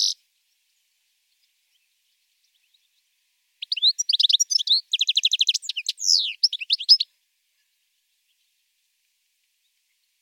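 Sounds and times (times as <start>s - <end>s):
European goldfinch singing liquid twitters and buzzy trills: 3.6s - 7.1s.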